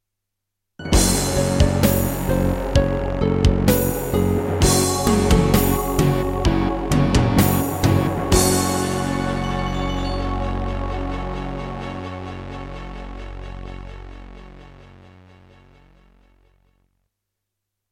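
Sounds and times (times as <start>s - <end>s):
Boss Dr. Synth DS-330 synthesizer music: 0.8s - 14.6s.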